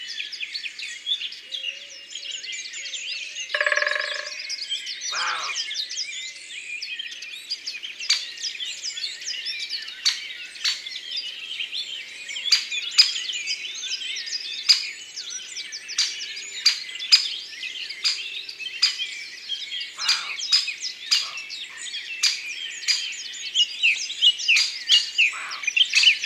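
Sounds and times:
chorus of songbirds twittering and chirping: 0.0s - 26.2s
Great spotted woodpecker kik calls: 3.6s - 4.4s, 5.1s - 5.6s, 20.0s - 26.2s.

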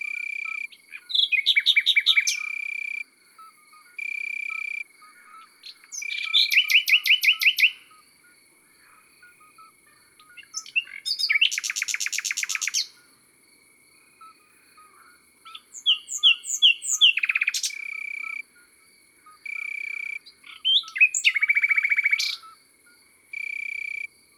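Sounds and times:
birds singing in the countryside: 0.0s - 3.0s, 3.7s - 8.0s, 8.8s - 13.1s, 14.2s - 18.4s, 19.3s - 22.6s
common nightingale singing in the countryside: 0.0s - 13.2s, 14.2s - 24.3s.

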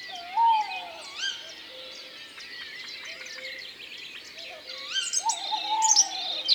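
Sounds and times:
tawny owl calling: 0.2s - 1.3s, 5.2s - 6.5s.

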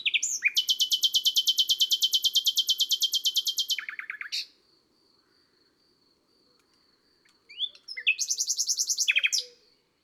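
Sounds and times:
common nightingale trilling song: 0.0s - 4.5s, 7.5s - 9.7s.

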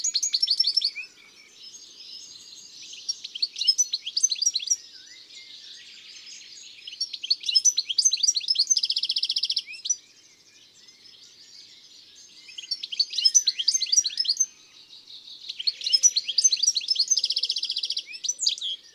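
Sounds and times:
European goldfinch song: 0.0s - 18.9s.

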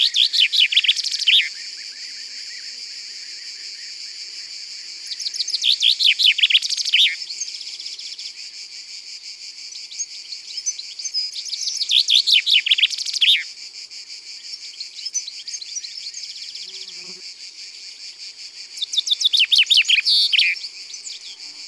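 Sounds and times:
common chaffinch singing: 0.0s - 1.5s, 5.1s - 7.2s, 10.6s - 13.4s, 18.8s - 21.6s
high insect-like hiss: 0.0s - 21.6s.

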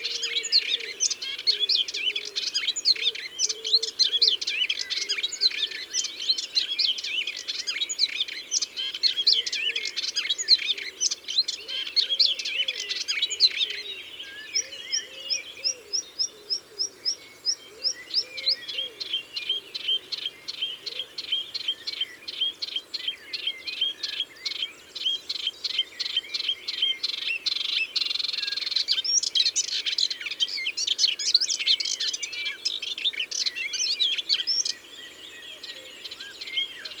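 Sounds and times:
Hippolais polyglotta melodious warbler singing: 0.0s - 36.9s.

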